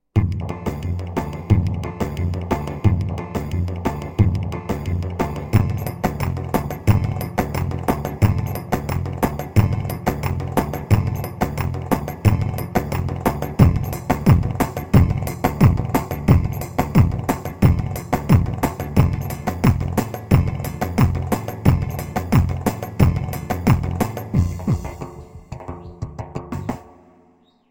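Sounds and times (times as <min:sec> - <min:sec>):
Korg Pa500 keyboard playing Silifke style music: 0:00.2 - 0:26.8.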